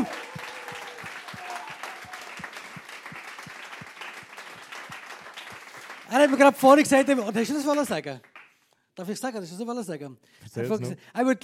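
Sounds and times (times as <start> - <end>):
audience applause: 0.0 - 8.5
speech: 6.1 - 8.3, 9.0 - 11.4.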